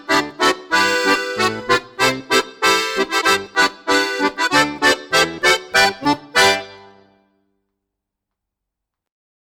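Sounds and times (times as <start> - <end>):
Christmas song: 0.0 - 7.4.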